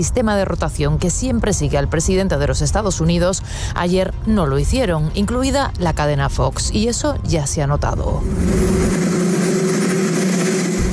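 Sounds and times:
speech: 0:00.0 - 0:09.0
helicopter noise: 0:08.2 - 0:10.9.

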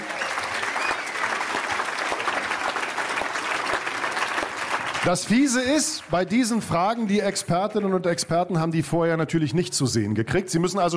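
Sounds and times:
audience applause: 0:00.0 - 0:08.6
speech: 0:05.0 - 0:10.9.

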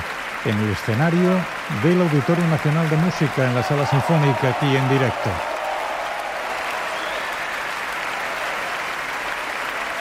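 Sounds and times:
audience applause in concert hall: 0:00.0 - 0:09.9
speech: 0:00.4 - 0:05.5.

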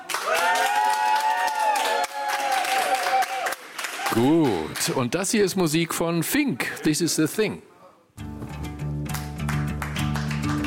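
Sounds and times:
closing applause from studio audience: 0:00.0 - 0:05.1, 0:09.1 - 0:10.6
speech: 0:04.2 - 0:07.7.

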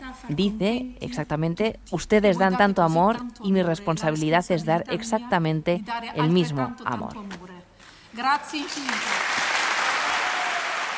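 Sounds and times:
speech: 0:00.3 - 0:07.5, 0:08.2 - 0:09.2
audience applause: 0:08.6 - 0:10.9.

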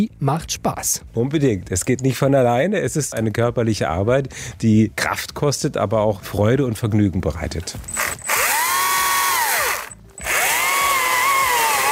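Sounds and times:
speech: 0:00.0 - 0:08.3
power saw cutting pieces from a tree trunk for firewood: 0:07.9 - 0:11.8.

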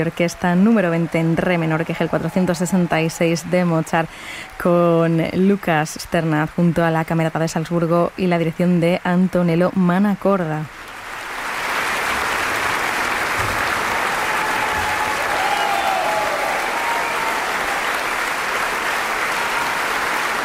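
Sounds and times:
concert audience in Carinthia applauding after a piano concerto: 0:00.0 - 0:05.5, 0:10.8 - 0:20.4
speech: 0:00.0 - 0:10.8.

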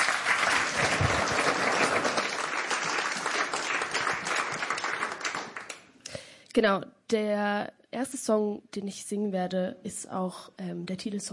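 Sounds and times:
audience applause: 0:00.0 - 0:05.9
speech: 0:06.6 - 0:11.3.

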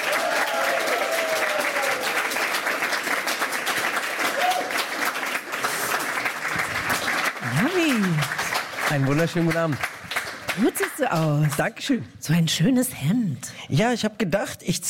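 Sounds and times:
enthusiastic applause: 0:00.0 - 0:11.7
speech: 0:09.0 - 0:09.9, 0:10.6 - 0:14.8.

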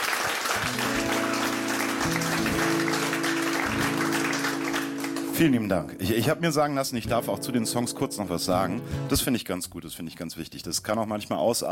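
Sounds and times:
audience applause: 0:00.0 - 0:05.4
speech: 0:05.4 - 0:11.6.

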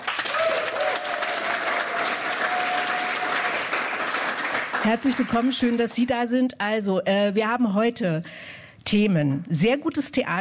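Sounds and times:
studio audience at an evening talk show applauding: 0:00.0 - 0:06.0
speech: 0:04.8 - 0:10.3.

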